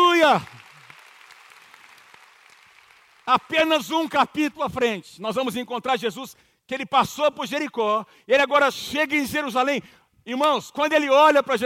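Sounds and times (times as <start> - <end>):
audience applause: 0.0 - 3.8
speech: 0.2 - 0.5, 3.3 - 11.6.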